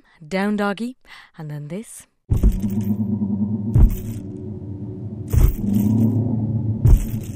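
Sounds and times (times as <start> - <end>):
speech: 0.3 - 3.0
sound effect of ghosts walking: 2.3 - 7.3.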